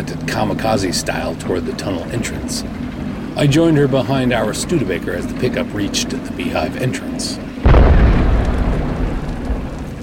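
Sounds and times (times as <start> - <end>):
speech: 0.0 - 7.7
explosion in a mountain tunnel: 7.6 - 10.0.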